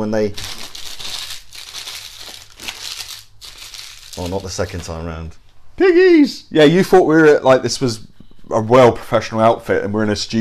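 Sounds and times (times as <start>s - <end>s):
speech: 0.0s - 0.6s, 4.2s - 10.3s
plastic packet being rustled and squeezed: 0.3s - 5.0s.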